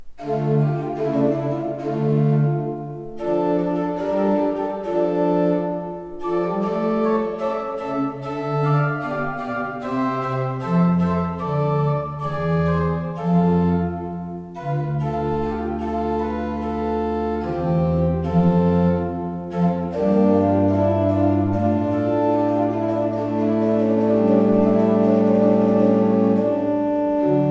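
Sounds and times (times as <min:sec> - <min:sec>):
pipe organ: 0:00.1 - 0:27.4.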